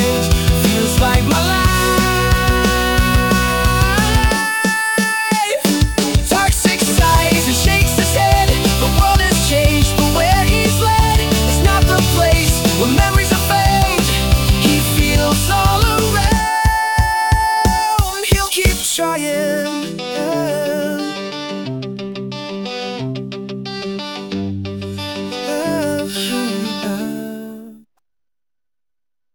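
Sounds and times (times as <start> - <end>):
genrefluid rock music: 0.0 - 27.0.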